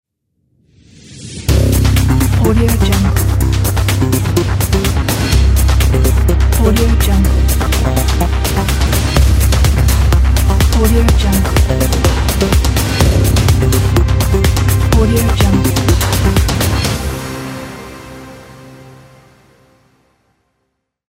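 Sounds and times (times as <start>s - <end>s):
global logo jingle: 1.5s - 20.0s.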